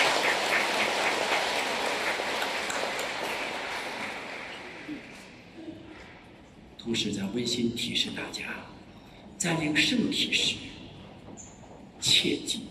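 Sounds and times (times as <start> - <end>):
applause: 0.0 - 5.2
speech: 6.9 - 8.8, 9.4 - 10.7.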